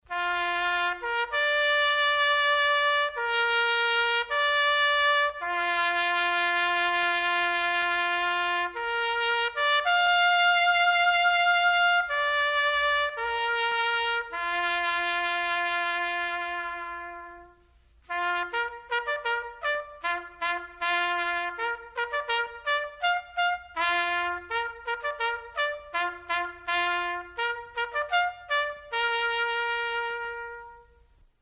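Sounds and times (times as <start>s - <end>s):
bugler playing at a church: 0.1s - 31.1s.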